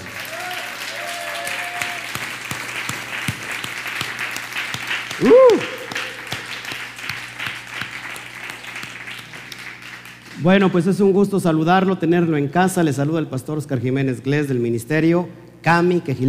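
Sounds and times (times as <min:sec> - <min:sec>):
audience applause: 0:00.0 - 0:10.4
speech: 0:05.2 - 0:05.8, 0:10.4 - 0:16.2.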